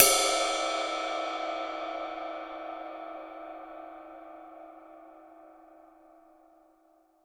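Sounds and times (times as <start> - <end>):
ride cymbal: 0.0 - 3.6.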